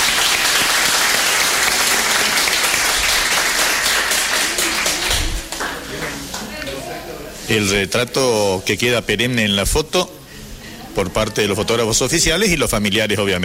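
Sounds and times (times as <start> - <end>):
audience applause: 0.0 - 6.5
speech: 7.5 - 10.2, 11.0 - 13.4.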